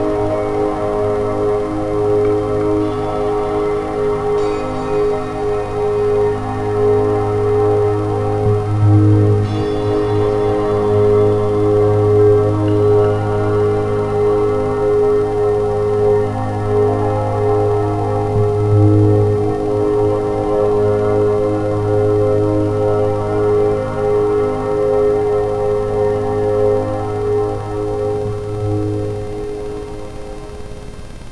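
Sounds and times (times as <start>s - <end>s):
Rife frequency rhythmic tones: 0.0s - 17.8s
ambient sound: 0.0s - 31.3s.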